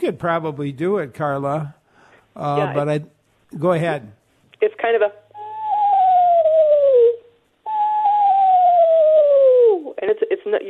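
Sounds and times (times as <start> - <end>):
speech: 0.0 - 1.8, 2.4 - 5.2, 10.0 - 10.6
screech owl whinny call: 5.4 - 9.9.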